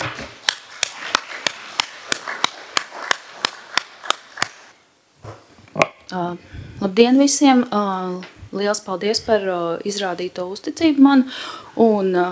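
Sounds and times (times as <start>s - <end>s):
loud applause in a council chamber: 0.0s - 4.8s
speech: 6.1s - 12.3s.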